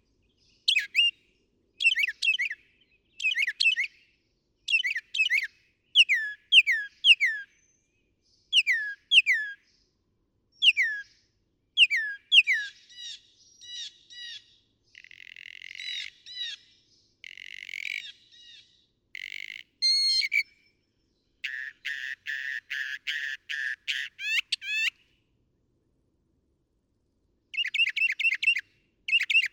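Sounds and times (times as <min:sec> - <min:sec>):
northern mockingbird singing: 0:00.5 - 0:04.1, 0:04.7 - 0:09.7, 0:10.6 - 0:11.2, 0:11.8 - 0:14.6, 0:19.8 - 0:25.0, 0:27.5 - 0:29.5.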